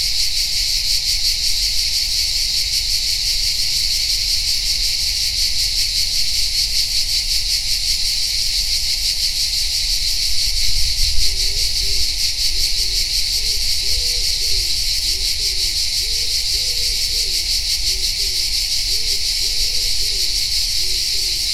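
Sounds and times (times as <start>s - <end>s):
cicadas: 0.0s - 21.5s.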